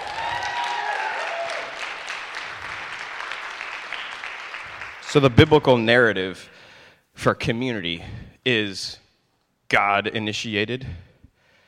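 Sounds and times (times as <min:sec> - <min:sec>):
whoops and whistled cheers: 0:00.0 - 0:01.9
audience clapping: 0:00.0 - 0:06.0
speech: 0:05.1 - 0:06.6, 0:07.2 - 0:09.0, 0:09.7 - 0:11.1.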